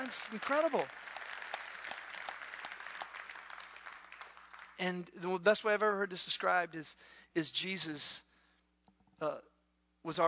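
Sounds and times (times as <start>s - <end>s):
audience applause: 0.0s - 4.8s
speech: 0.1s - 1.2s, 4.8s - 8.3s, 9.2s - 10.2s.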